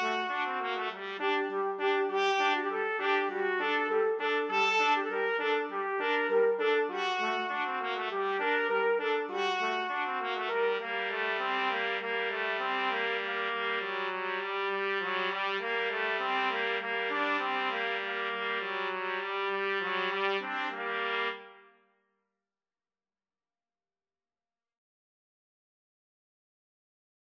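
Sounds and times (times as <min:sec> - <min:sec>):
trumpet trio karaoke track: 0:00.0 - 0:21.6.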